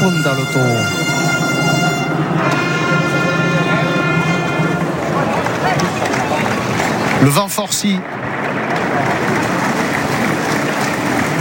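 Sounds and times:
bullring crowd applauding in an open arena: 0.0s - 11.4s
speech: 0.1s - 1.2s, 7.2s - 8.3s.

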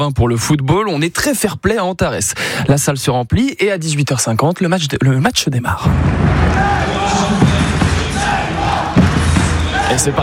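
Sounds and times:
speech: 0.0s - 7.4s, 9.9s - 10.2s
Le Mans basketball supporters chanting in the Antarès arena stands: 6.3s - 10.2s.

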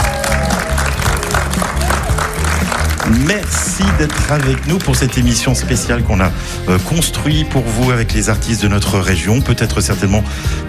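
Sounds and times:
audience applause: 0.0s - 5.3s
speech: 3.3s - 10.6s.

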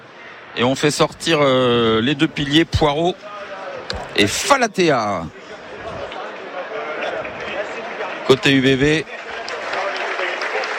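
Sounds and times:
speech: 0.6s - 5.4s, 8.3s - 9.2s
stadium crowd applauding: 6.5s - 10.7s.

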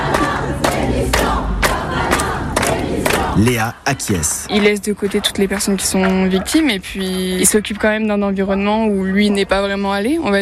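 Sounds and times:
crowd chanting demanding resignation: 0.0s - 6.7s
speech: 3.4s - 10.3s.

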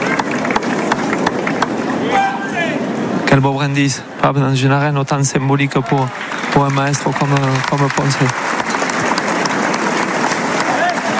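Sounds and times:
bullring crowd clapping in ovation for matador Enrique Ponce: 0.0s - 2.3s, 5.3s - 11.1s
speech: 3.3s - 8.6s.

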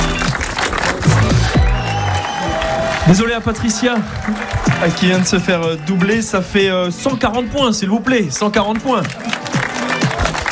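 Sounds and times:
audience applause at a live quiz game: 0.0s - 6.1s, 8.9s - 10.5s
overlapping voices: 0.0s - 7.3s, 8.5s - 10.5s
speech: 3.1s - 9.5s.

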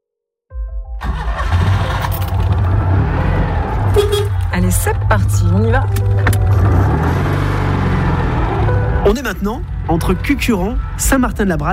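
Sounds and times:
blue 1970s Citroën 2CV engine on country roads in the Luberon: 1.0s - 11.1s
speech: 4.8s - 6.4s, 9.1s - 11.7s.

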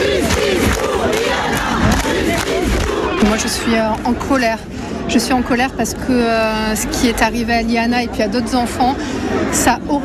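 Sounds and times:
crowd shouting at a protest rally in Toulouse: 0.0s - 4.1s
speech: 3.4s - 10.0s.

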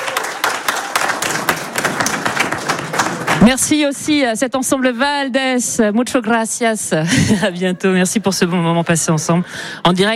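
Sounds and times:
audience applauding: 0.0s - 3.5s
speech: 3.5s - 10.1s.

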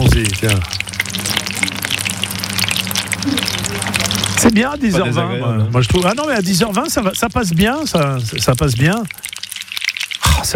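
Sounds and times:
food sizzling in a pan: 0.0s - 5.1s, 5.7s - 10.5s
speech: 0.4s - 0.9s, 4.4s - 9.3s.

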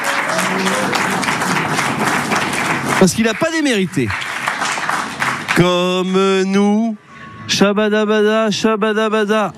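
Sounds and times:
studio audience applause on a quiz show: 0.0s - 5.8s
speech: 0.3s - 1.0s, 3.0s - 4.3s, 5.6s - 9.5s.

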